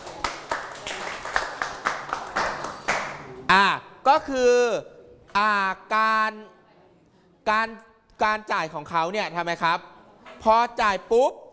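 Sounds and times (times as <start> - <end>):
classroom clapping for a classmate: 0.0 - 3.4
speech: 3.5 - 6.6, 7.4 - 11.4.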